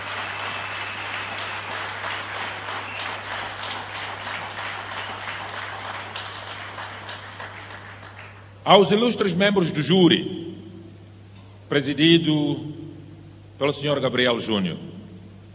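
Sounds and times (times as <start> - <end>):
crowd applause at an awards ceremony honoring young people: 0.0 - 8.6
steady low electrical hum: 0.0 - 15.5
speech: 8.7 - 10.5, 11.7 - 12.8, 13.6 - 14.9.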